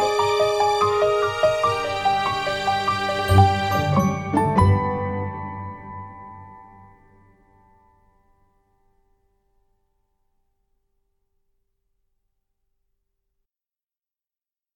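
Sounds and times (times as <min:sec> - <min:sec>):
orchestra playing: 0:00.0 - 0:06.8
piano: 0:00.0 - 0:09.4.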